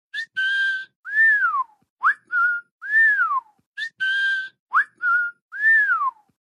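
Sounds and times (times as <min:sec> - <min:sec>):
whistle: 0:00.1 - 0:06.4.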